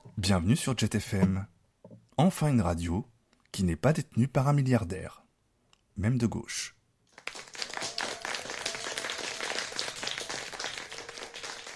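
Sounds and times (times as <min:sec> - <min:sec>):
speech: 0:00.2 - 0:01.6, 0:02.2 - 0:05.2, 0:06.0 - 0:06.8
clapping: 0:07.1 - 0:11.7.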